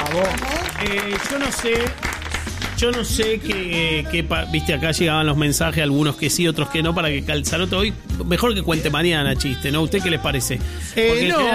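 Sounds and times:
audience applause: 0:00.0 - 0:03.6
speech: 0:00.2 - 0:02.2, 0:02.8 - 0:11.5.

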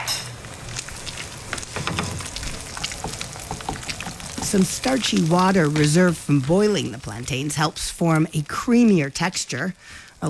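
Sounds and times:
eggs and cheese sizzling in buttered skillet: 0:00.0 - 0:10.2
speech: 0:04.5 - 0:10.2.

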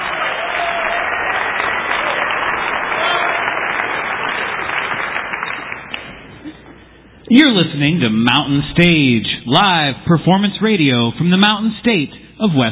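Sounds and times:
audience applause: 0:00.0 - 0:06.5
speech: 0:07.3 - 0:12.6.

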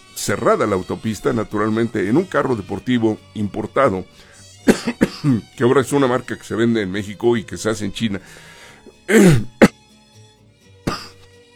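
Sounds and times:
speech: 0:00.2 - 0:09.6
cough: 0:04.7 - 0:05.5, 0:09.1 - 0:09.8, 0:10.9 - 0:11.3
throat clearing: 0:04.7 - 0:05.5, 0:09.1 - 0:09.8, 0:10.9 - 0:11.3.

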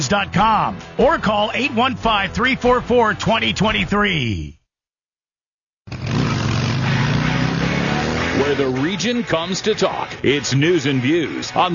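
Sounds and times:
speech: 0:00.0 - 0:04.6, 0:08.4 - 0:11.7
World of Outlaws sprint car engines roaring in a race: 0:05.9 - 0:11.7.

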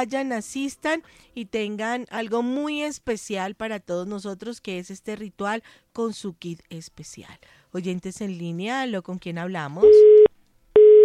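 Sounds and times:
speech: 0:00.0 - 0:10.3
telephone line tone after a dropped call: 0:09.8 - 0:11.0.

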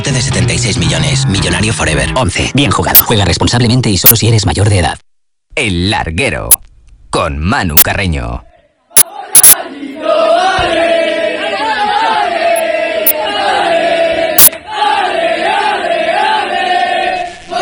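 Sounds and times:
speech: 0:00.1 - 0:05.0, 0:05.6 - 0:06.6, 0:07.2 - 0:08.5
football fans chanting welcoming team bus: 0:08.4 - 0:17.6.

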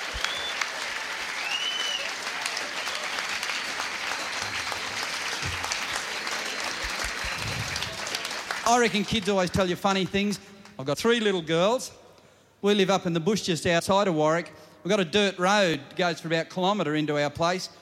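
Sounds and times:
whistle: 0:00.0 - 0:00.7, 0:01.4 - 0:02.2, 0:04.0 - 0:05.0, 0:06.3 - 0:08.0
audience applause: 0:00.0 - 0:09.5
speech: 0:08.7 - 0:12.0, 0:12.6 - 0:17.7.

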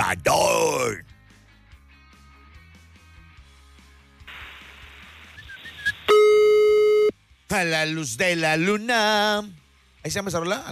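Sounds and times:
speech: 0:00.1 - 0:01.1, 0:07.5 - 0:10.7
loud steady electronic telephone line tone: 0:05.2 - 0:07.1
faint brief high telephone dialing beeps: 0:05.4 - 0:07.1.

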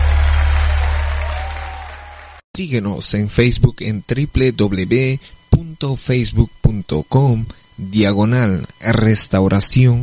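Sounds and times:
church congregation applauding during a service: 0:00.0 - 0:02.4
speech: 0:02.6 - 0:10.0.

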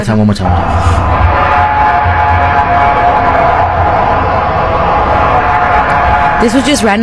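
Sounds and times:
speech: 0:00.0 - 0:01.0, 0:06.4 - 0:07.0
eerie siren-like alarm: 0:00.4 - 0:07.0.

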